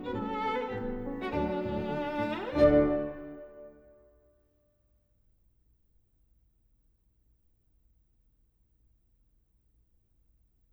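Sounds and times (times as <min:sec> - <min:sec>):
violin and piano piece: 0:00.0 - 0:03.9.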